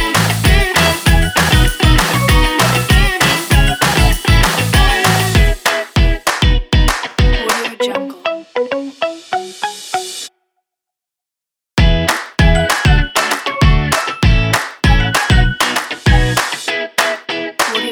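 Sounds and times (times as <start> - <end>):
upbeat happy kids indie rock music: 0.0 - 7.8, 11.8 - 17.9.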